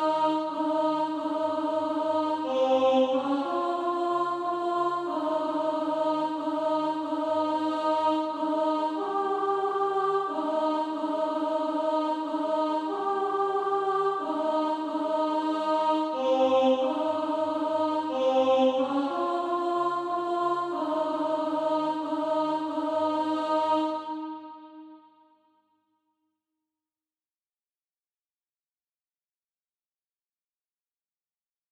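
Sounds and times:
alto voice singing SATB practice music: 0.0 - 25.0.

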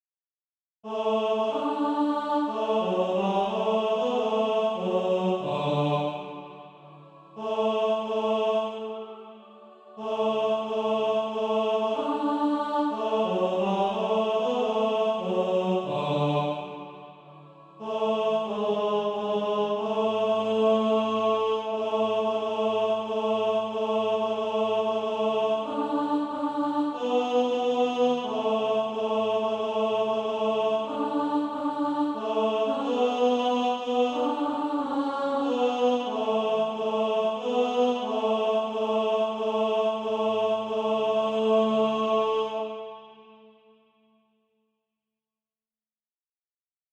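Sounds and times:
tenor singing: 0.9 - 43.0.

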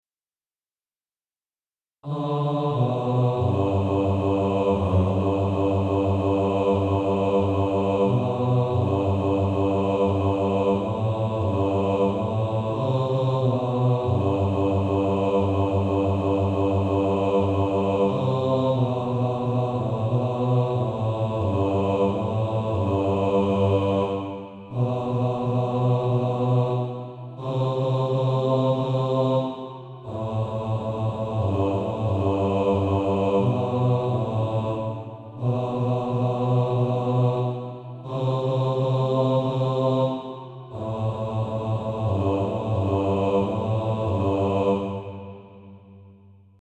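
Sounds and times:
male choir singing practice music: 2.0 - 46.1.

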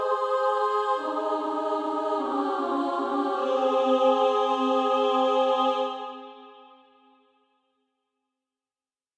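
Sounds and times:
female choir singing: 0.0 - 6.9.

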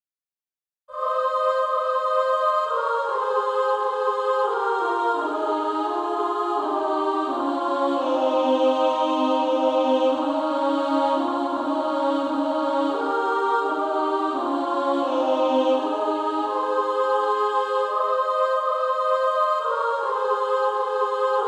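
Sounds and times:
female choir singing: 0.9 - 21.4.

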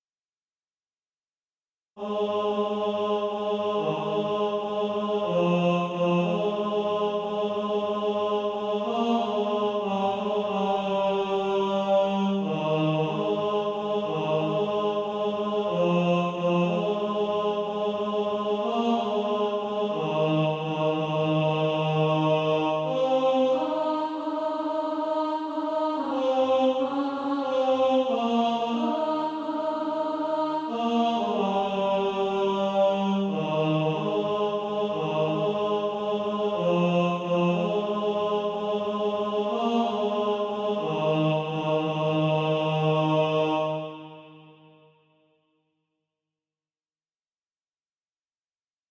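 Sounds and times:
tenor SATB practice part: 2.0 - 44.0.

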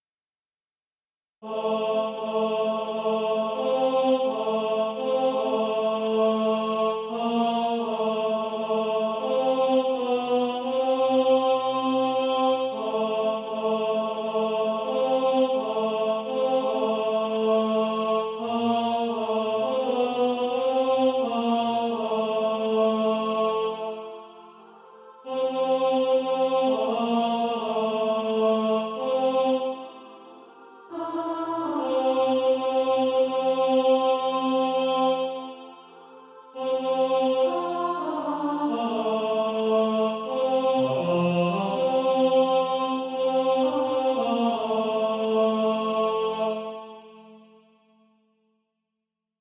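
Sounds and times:
tenor singing: 1.4 - 47.0.

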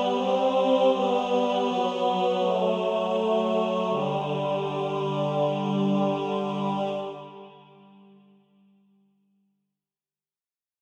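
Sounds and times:
male choir of tenors and basses singing: 0.0 - 8.0.

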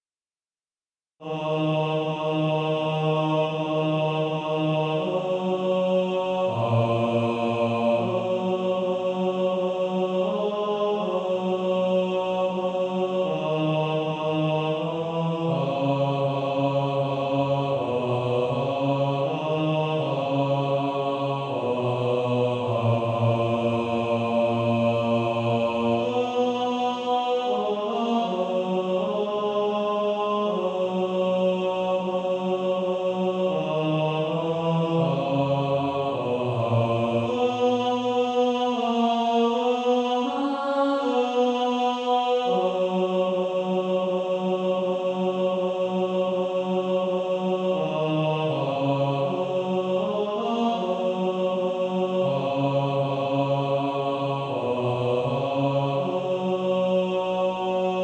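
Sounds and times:
male choir singing: 1.2 - 58.0.

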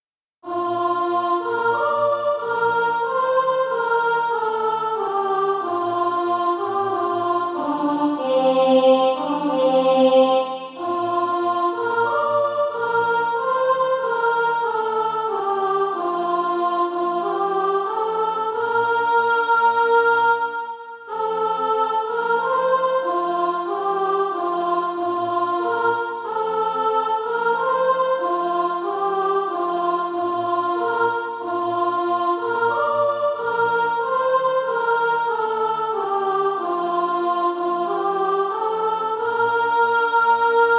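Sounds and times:
soprano singing SATB practice music: 0.4 - 40.7.

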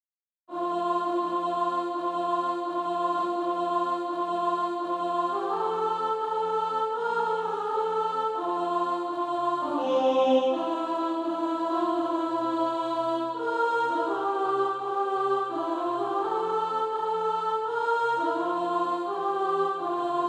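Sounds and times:
alto voice singing SATB practice music: 0.5 - 20.2.

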